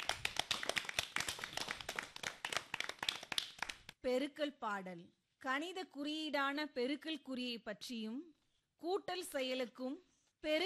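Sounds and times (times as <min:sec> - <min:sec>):
audience applauding a Tamil pronunciation performance: 0:00.0 - 0:03.8
speech: 0:04.0 - 0:10.6.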